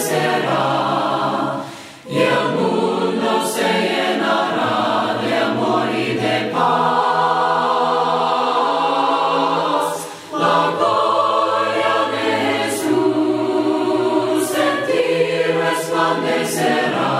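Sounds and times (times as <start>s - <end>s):
voices singing hymns a cappella: 0.0s - 17.1s.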